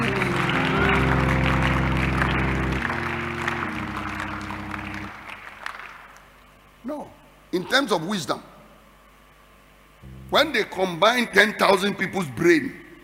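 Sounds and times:
audience clapping hands: 0.0s - 6.4s
speech: 7.7s - 8.5s, 10.3s - 12.8s.

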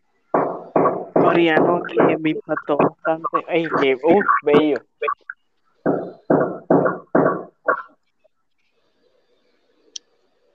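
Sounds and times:
hammering in the house: 0.4s - 4.8s, 5.8s - 7.8s
speech: 1.3s - 6.6s.

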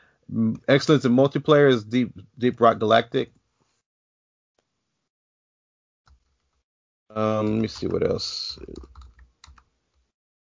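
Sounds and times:
speech: 0.3s - 3.4s, 7.1s - 9.0s
typing on a computer keyboard: 7.4s - 9.7s.

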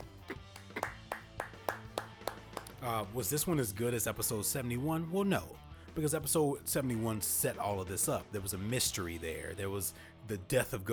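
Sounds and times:
applause: 0.4s - 2.8s
speech: 2.8s - 10.9s.

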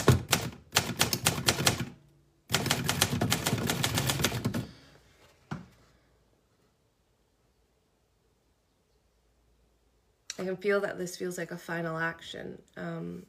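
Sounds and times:
typewriter keystrokes: 0.0s - 1.9s, 2.5s - 4.6s
speech: 10.5s - 13.2s.

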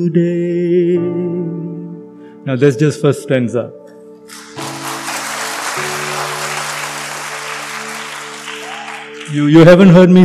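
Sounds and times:
speech: 0.0s - 1.2s, 2.4s - 4.4s, 9.3s - 10.2s
low keyboard chords: 0.0s - 10.2s
audience clapping: 4.3s - 9.9s.

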